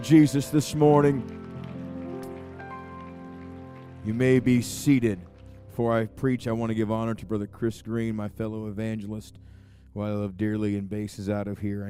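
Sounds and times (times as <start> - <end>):
speech: 0.0 - 1.4, 4.0 - 11.8
audience clapping hands: 0.0 - 7.1.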